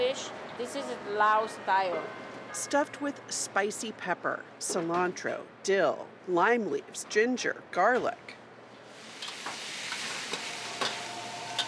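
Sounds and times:
speech: 0:00.2 - 0:08.4
food frying in a pan: 0:08.9 - 0:11.6.

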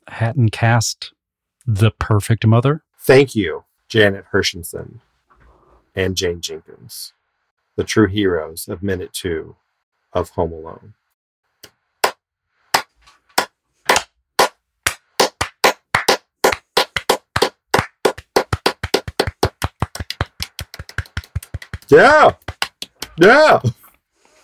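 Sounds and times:
speech: 0:00.2 - 0:05.1, 0:06.0 - 0:07.2, 0:07.8 - 0:11.0, 0:21.9 - 0:22.5, 0:23.2 - 0:23.8
slow clap: 0:11.6 - 0:23.7
person shouting yeah: 0:21.9 - 0:22.4, 0:23.0 - 0:23.7.

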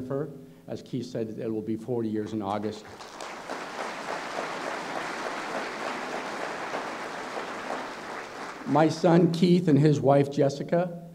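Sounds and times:
speech: 0:00.0 - 0:03.3, 0:08.7 - 0:11.0
audience applause: 0:02.6 - 0:09.0.

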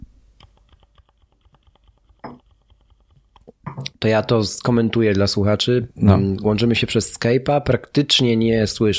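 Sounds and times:
typing on keyboard with silent mechanical switches: 0:00.4 - 0:03.4
speech: 0:04.0 - 0:08.9.

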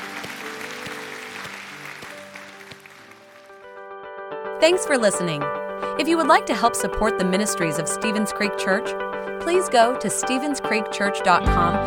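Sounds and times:
audience applause: 0:00.0 - 0:03.7
sustained keyboard chords: 0:00.0 - 0:11.8
speech: 0:04.6 - 0:11.8.

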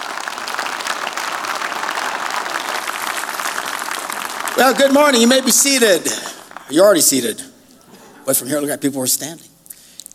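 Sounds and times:
audience clapping at a church service: 0:00.0 - 0:07.3
speech: 0:04.6 - 0:07.5, 0:08.3 - 0:09.5.

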